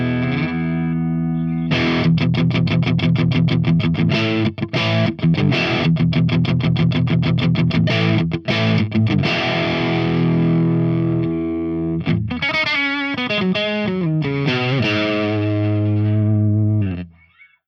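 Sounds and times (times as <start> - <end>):
crunch guitar amp tone through V30 speaker: 0.0 - 17.6.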